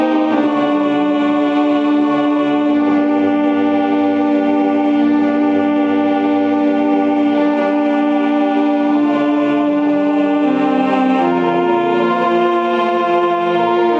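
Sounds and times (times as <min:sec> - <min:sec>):
alto voice singing, digital recording: 0:00.0 - 0:13.9.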